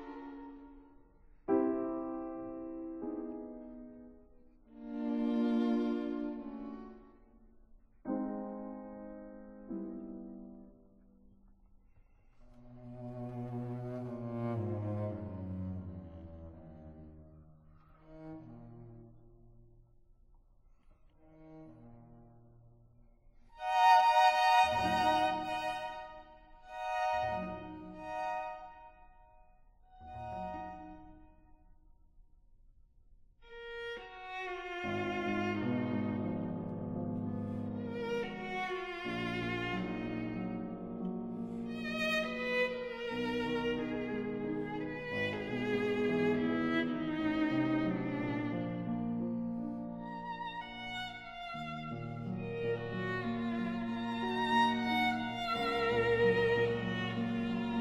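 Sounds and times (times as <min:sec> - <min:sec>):
piano quintet playing: 0:01.5 - 0:11.0, 0:12.6 - 0:17.2, 0:23.6 - 0:29.2, 0:30.0 - 0:31.3, 0:34.7 - 0:57.8.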